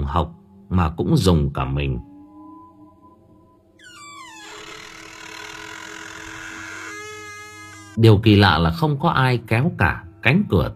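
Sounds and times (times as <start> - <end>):
speech: 0.1 - 2.1, 8.0 - 10.7
door creaking open in the night: 3.8 - 8.0.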